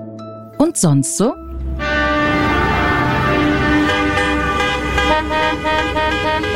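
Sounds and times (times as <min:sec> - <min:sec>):
speech: 0:00.6 - 0:01.4
horn honking: 0:01.7 - 0:06.5.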